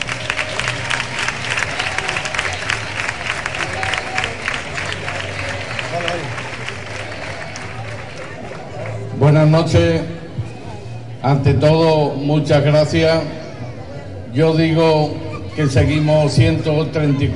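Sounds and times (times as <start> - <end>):
audience applause: 0.0 - 9.2
speech: 9.5 - 10.1, 11.2 - 13.4, 14.3 - 17.3.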